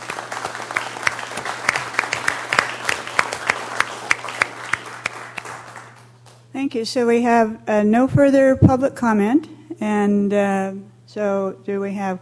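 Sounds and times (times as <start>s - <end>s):
audience applause: 0.0s - 6.4s
speech: 6.6s - 12.1s.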